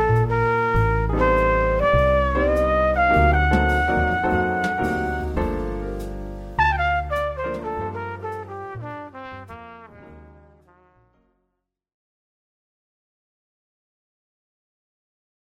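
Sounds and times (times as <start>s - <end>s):
jazz music: 0.0s - 11.5s.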